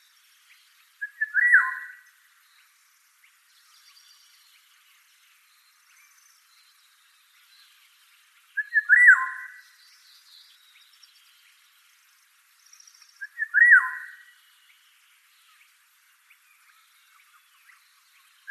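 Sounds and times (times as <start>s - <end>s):
oriole song of slurred whistled phrases: 0.1s - 2.7s, 5.4s - 11.6s, 12.6s - 14.8s, 16.3s - 18.4s.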